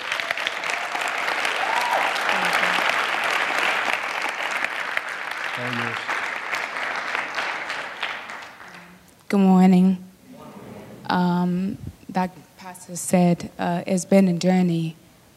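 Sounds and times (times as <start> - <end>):
applause: 0.0 - 9.0
speech: 5.6 - 6.2, 9.3 - 10.0, 11.2 - 15.0.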